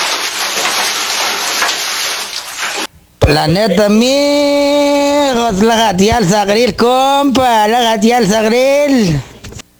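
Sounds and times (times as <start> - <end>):
bucket of water being thrown: 0.0 - 3.4
speech: 3.3 - 4.5, 5.3 - 9.3.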